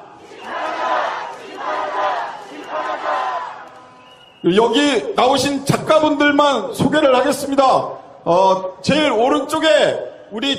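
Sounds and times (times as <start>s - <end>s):
crowd chanting protest slogans: 0.0s - 4.0s
speech: 4.4s - 10.5s.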